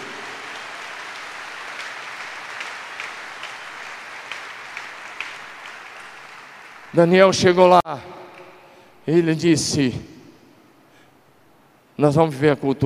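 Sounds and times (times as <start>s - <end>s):
audience applause: 0.0s - 7.8s
speech: 6.9s - 8.2s, 9.0s - 10.1s, 12.0s - 12.8s.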